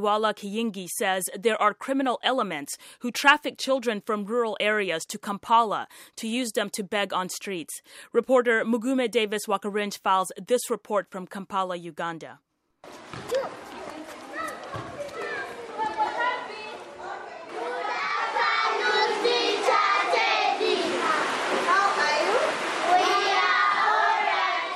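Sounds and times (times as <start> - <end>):
speech: 0.0 - 13.6
rain: 15.1 - 24.7.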